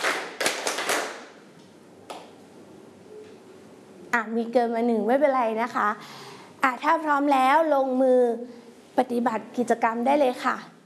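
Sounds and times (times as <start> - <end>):
hands clapping: 0.0 - 2.4
speech: 4.1 - 10.7.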